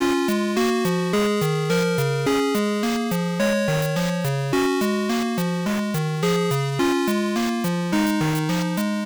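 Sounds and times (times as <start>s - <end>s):
chiptune background music: 0.0s - 9.0s.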